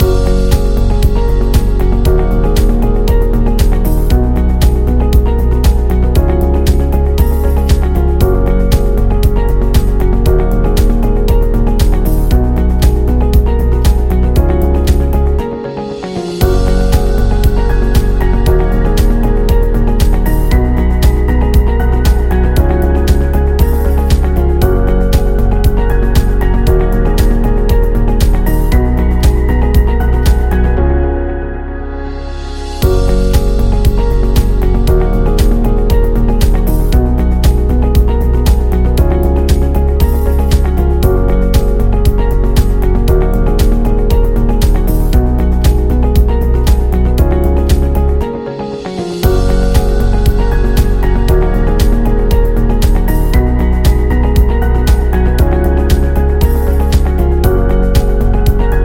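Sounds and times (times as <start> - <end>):
background music: 0.0 - 58.8.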